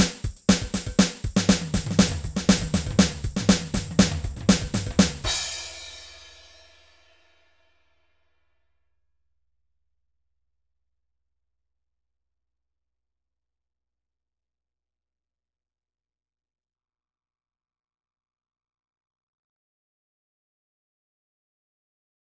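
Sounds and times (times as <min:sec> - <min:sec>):
rock drum grooves from MIDI loops: 0:00.0 - 0:06.8.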